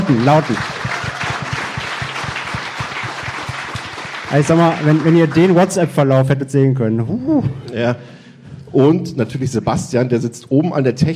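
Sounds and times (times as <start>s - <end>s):
crowd applause: 0.0s - 6.0s
speech: 0.1s - 0.9s, 4.3s - 11.1s.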